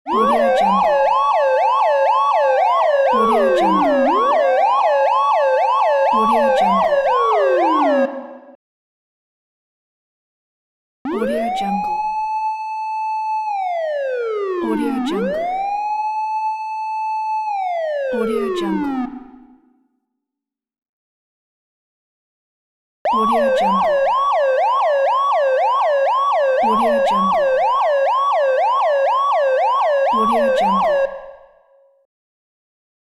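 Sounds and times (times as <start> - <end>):
police sirens: 0.1 - 8.6, 11.1 - 19.2, 23.1 - 31.6.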